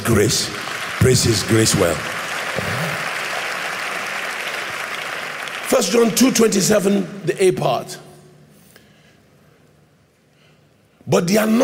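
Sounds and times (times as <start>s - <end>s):
audience applauding: 0.0s - 6.6s
speech: 0.1s - 2.9s, 5.7s - 8.1s, 11.1s - 11.6s.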